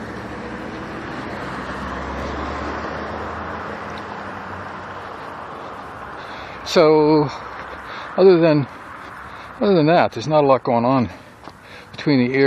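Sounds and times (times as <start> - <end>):
road traffic on a busy morning: 0.0 - 12.4
speech: 6.7 - 7.5, 8.2 - 8.8, 9.6 - 11.2, 12.0 - 12.4.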